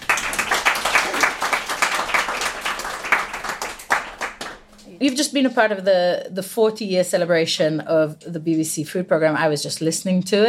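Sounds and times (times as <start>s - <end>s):
audience applauding a guest speaker at a celebration event: 0.0s - 4.7s
speech: 5.0s - 10.4s.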